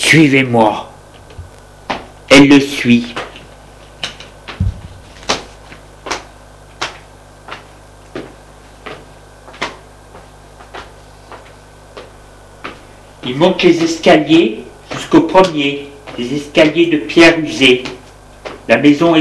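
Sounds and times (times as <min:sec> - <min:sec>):
speech: 0:00.1 - 0:00.9, 0:02.3 - 0:03.2, 0:13.3 - 0:18.0, 0:18.7 - 0:19.1
door closing: 0:04.6 - 0:05.1.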